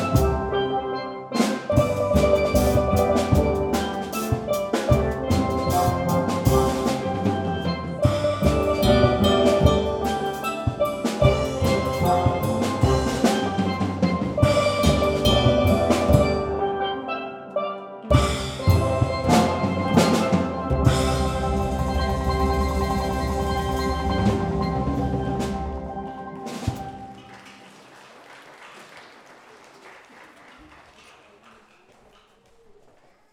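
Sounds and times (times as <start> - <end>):
steel pan instrumental: 0.0 - 27.4.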